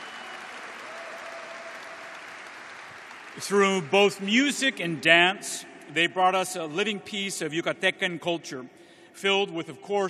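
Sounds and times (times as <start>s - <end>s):
audience applause: 0.0s - 4.2s
speech: 3.4s - 10.0s.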